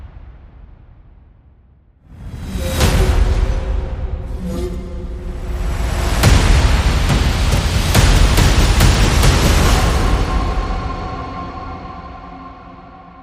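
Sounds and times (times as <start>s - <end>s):
tribal music: 2.1s - 12.2s.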